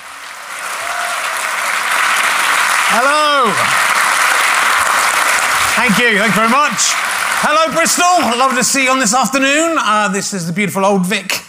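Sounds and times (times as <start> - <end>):
theatre audience applause at the Old Vic in Bristol: 0.0 - 9.8
speech: 2.9 - 3.9, 5.8 - 11.4.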